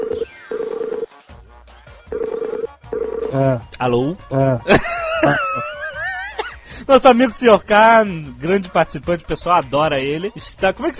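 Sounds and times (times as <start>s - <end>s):
electronic tones of a telephone call being dialed: 0.0s - 1.1s, 2.1s - 3.4s
speech: 3.3s - 5.7s, 6.9s - 10.9s
laughter: 4.6s - 6.6s.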